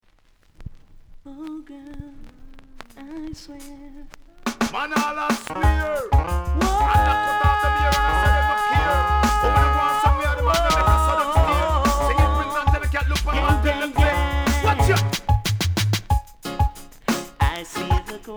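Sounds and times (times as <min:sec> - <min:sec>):
tenor singing: 0:01.4 - 0:15.6, 0:17.0 - 0:18.3.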